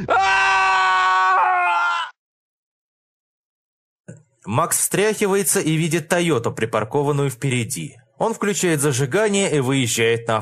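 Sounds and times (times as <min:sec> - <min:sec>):
speech: 0:00.0 - 0:00.4, 0:04.4 - 0:10.4
man screaming in agony: 0:00.0 - 0:02.2.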